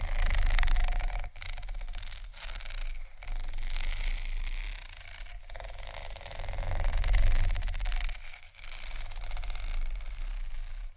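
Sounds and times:
scratching and tapping on textured surfaces: 0:00.0 - 0:10.9.

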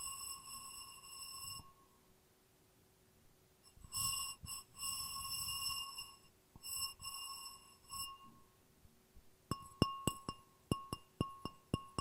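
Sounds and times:
glass ringing: 0:00.0 - 0:01.8, 0:03.7 - 0:08.4, 0:09.5 - 0:11.9
glass tapping: 0:03.8 - 0:08.4, 0:09.5 - 0:11.9.

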